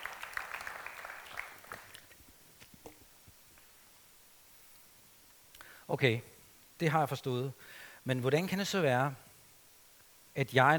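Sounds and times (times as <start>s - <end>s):
audience applause: 0.0s - 2.2s
speech: 5.9s - 9.2s, 10.4s - 10.7s.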